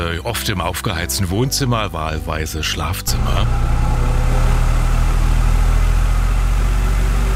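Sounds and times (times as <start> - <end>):
speech: 0.0 - 3.9
electric fan blowing air: 3.1 - 7.3.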